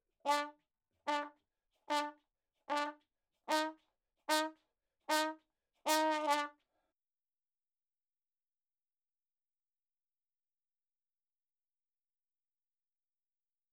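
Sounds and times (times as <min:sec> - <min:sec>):
ragtime trumpet playing in a room: 0:00.3 - 0:00.5, 0:01.1 - 0:06.6.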